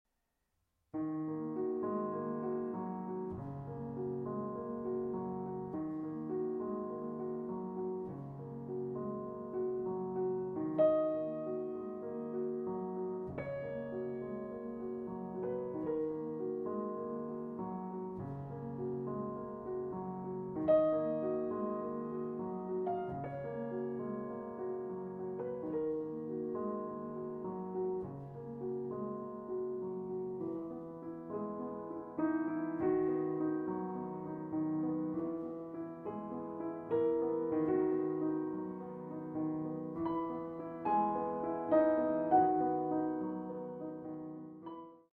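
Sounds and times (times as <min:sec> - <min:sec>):
solo piano: 0:00.9 - 0:45.1.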